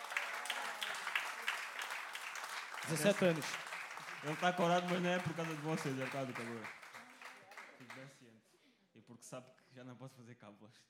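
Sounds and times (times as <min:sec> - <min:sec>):
audience applause: 0:00.0 - 0:08.1
speech: 0:02.8 - 0:06.8, 0:07.9 - 0:10.8.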